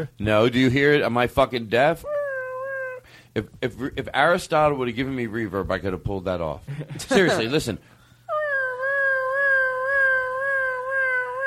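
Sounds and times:
speech: 0.0 - 2.2, 3.4 - 7.9
voice imitating a siren: 2.0 - 3.0, 8.3 - 11.4.

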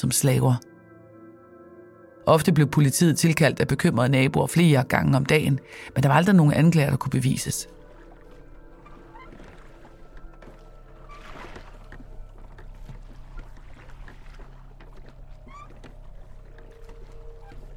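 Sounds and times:
speech: 0.0 - 0.7, 2.3 - 7.8
water sloshing and lapping against rowboat hull on a lake: 5.6 - 17.7.

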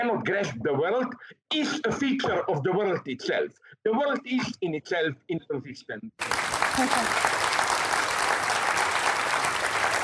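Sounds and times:
speech: 0.0 - 7.6
audience applause: 6.2 - 10.0.

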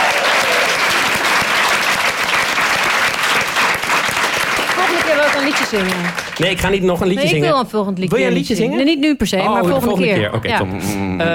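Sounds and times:
audience applause: 0.0 - 7.2
speech: 5.4 - 11.3.

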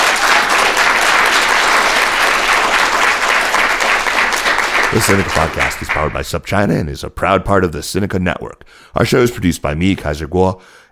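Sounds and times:
audience applause: 0.0 - 6.3
speech: 5.0 - 10.9.

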